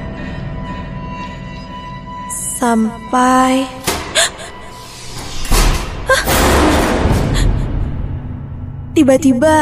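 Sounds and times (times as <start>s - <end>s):
speech: 2.6s - 4.3s, 9.0s - 9.6s
door slamming shut: 3.8s - 7.6s.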